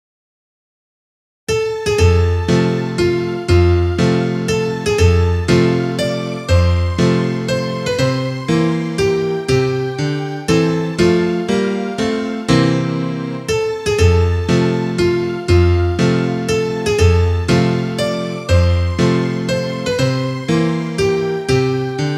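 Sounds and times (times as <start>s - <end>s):
instrumental music: 1.5s - 22.1s.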